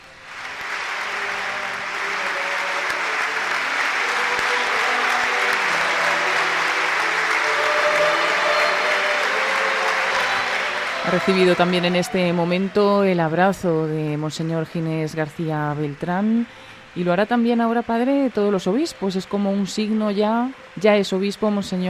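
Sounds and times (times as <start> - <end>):
applause from attendees: 0.0 - 13.6
faint singing tones: 0.9 - 12.5
speech: 11.1 - 21.8.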